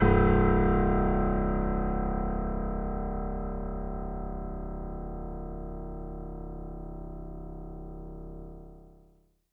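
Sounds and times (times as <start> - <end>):
acoustic piano: 0.0 - 9.0.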